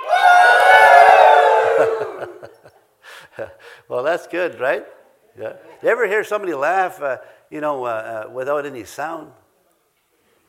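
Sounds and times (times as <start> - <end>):
audience cheering: 0.0 - 2.5
laughter: 1.4 - 2.8
speech: 3.4 - 9.4.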